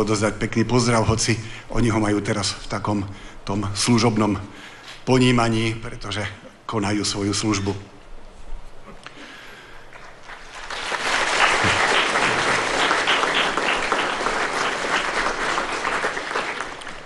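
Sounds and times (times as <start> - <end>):
speech: 0.0 - 7.9
audience applause: 9.9 - 17.0.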